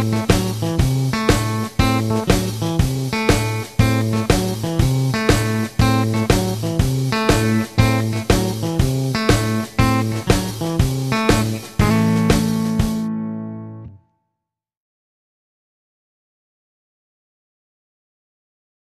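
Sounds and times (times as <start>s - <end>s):
rhythm guitar: 0.0s - 14.0s.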